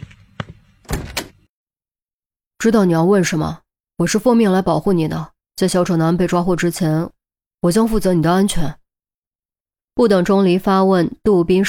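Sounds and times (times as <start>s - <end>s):
door opening: 0.0s - 1.5s
speech: 2.6s - 8.8s, 10.0s - 11.6s.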